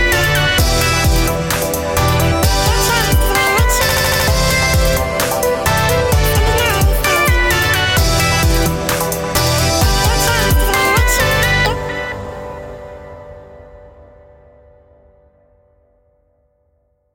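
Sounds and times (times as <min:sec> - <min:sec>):
electronic dance music: 0:00.0 - 0:12.7.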